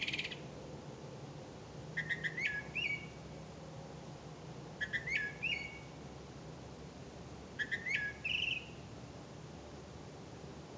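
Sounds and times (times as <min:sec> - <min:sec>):
faint background hiss: 0:00.0 - 0:10.7
bird whistling: 0:02.0 - 0:03.2, 0:04.8 - 0:05.9, 0:07.6 - 0:08.8.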